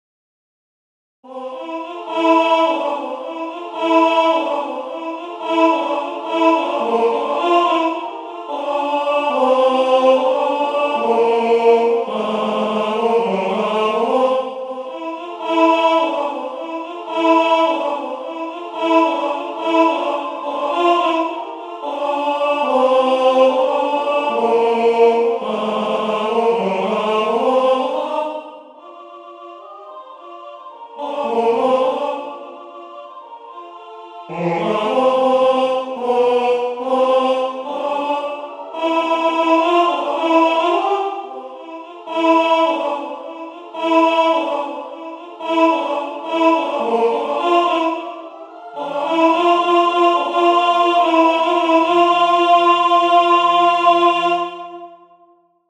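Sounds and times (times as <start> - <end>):
tenor singing: 1.3 - 55.4.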